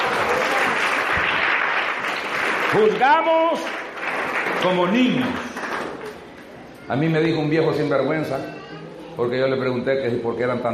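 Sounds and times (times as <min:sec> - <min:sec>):
audience applause: 0:00.0 - 0:06.2
speech: 0:02.7 - 0:03.8, 0:04.6 - 0:05.5, 0:06.9 - 0:08.6, 0:09.2 - 0:10.7.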